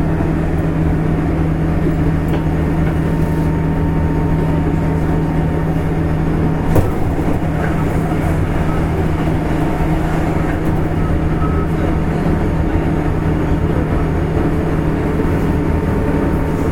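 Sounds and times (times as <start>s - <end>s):
JR West 201 series train running on the Osaka Loop Line: 0.0s - 16.7s
faint voices: 7.3s - 16.7s.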